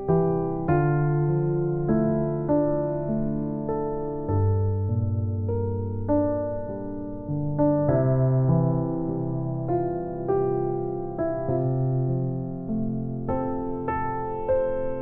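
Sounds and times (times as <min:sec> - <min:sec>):
sleepy piano: 0:00.0 - 0:15.0.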